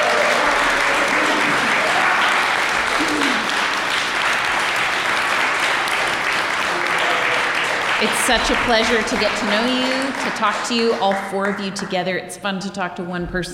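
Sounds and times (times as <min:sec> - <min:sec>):
audience applause: 0:00.0 - 0:11.9
speech: 0:08.0 - 0:13.5.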